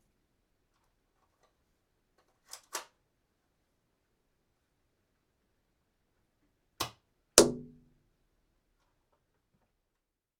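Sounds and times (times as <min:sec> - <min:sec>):
dart gun shooting: 0:07.4 - 0:07.8.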